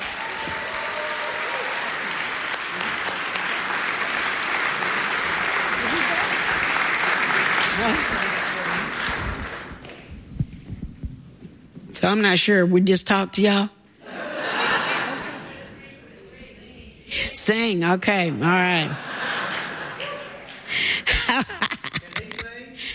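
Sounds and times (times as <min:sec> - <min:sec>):
audience applause welcoming two book authors: 0:00.0 - 0:10.1
speech: 0:07.9 - 0:08.5, 0:12.0 - 0:13.8, 0:17.5 - 0:19.1
laughter: 0:14.0 - 0:16.3, 0:18.8 - 0:22.8.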